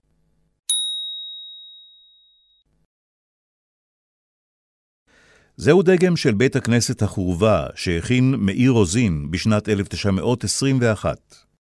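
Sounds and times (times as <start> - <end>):
bell chime: 0.7 - 2.6
speech: 5.6 - 11.5.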